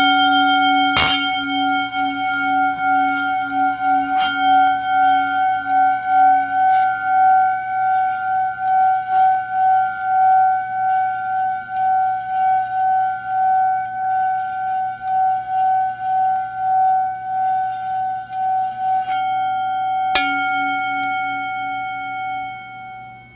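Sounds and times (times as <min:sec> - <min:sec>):
bowl: 0:00.0 - 0:23.3.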